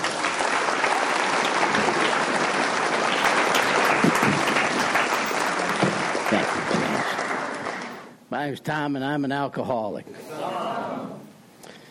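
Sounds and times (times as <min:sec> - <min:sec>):
round of applause: 0:00.0 - 0:08.2
speech: 0:08.4 - 0:10.2.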